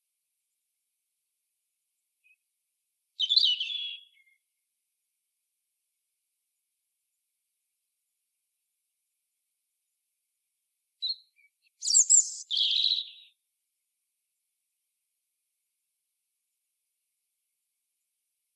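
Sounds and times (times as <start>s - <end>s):
European robin singing: 3.2s - 4.4s, 11.0s - 13.4s.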